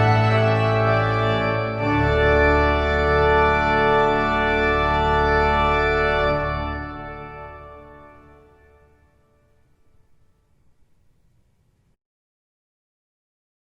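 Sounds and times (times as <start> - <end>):
trumpet piece: 0.0 - 9.2.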